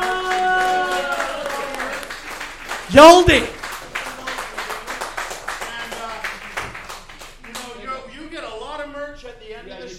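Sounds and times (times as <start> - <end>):
audience applause: 0.0 - 7.8
speech: 2.9 - 3.6.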